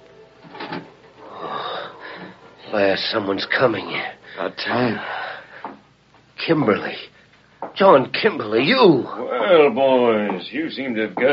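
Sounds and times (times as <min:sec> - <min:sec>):
door to a room creaking slowly open: 0:00.4 - 0:02.7
speech: 0:02.7 - 0:05.2, 0:06.4 - 0:07.1, 0:07.8 - 0:11.3.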